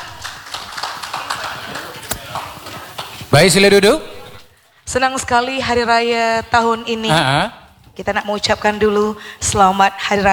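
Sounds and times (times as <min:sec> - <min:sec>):
crowd applauding: 0:00.0 - 0:03.1
speech: 0:03.3 - 0:04.1, 0:04.9 - 0:10.3.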